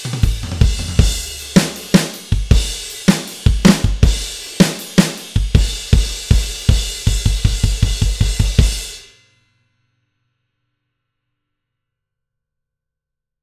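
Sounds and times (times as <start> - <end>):
drums: 0.0 - 9.3.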